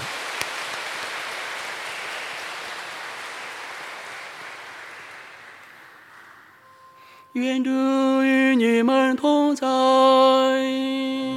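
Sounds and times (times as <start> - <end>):
audience applause: 0.0 - 6.6
speech: 7.3 - 11.2.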